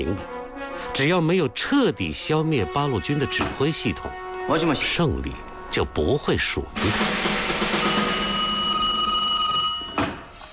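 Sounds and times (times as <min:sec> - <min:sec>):
speech: 0:00.0 - 0:00.3, 0:01.0 - 0:07.8
telephone ringing with metallic bell tone: 0:07.6 - 0:10.3.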